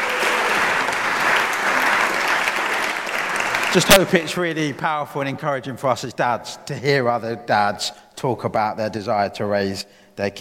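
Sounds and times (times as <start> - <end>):
audience applause: 0.0 - 4.6
speech: 3.7 - 10.3.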